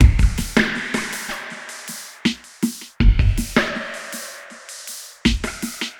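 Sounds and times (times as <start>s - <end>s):
ambient drum loop: 0.0s - 5.9s.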